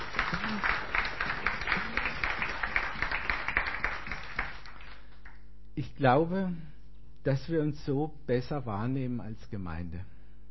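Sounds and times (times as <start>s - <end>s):
audience applause: 0.0s - 5.2s
speech: 5.8s - 10.1s.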